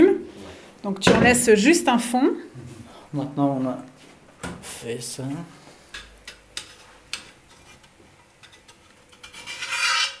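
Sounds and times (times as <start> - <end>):
speech: 0.8 - 3.9, 4.7 - 5.6
utensil scraping leftover bits from a saucepan: 5.8 - 10.1.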